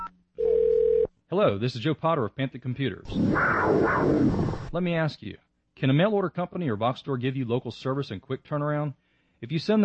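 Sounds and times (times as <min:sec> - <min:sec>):
telephone dial tone: 0:00.4 - 0:01.1
speech: 0:01.4 - 0:09.8.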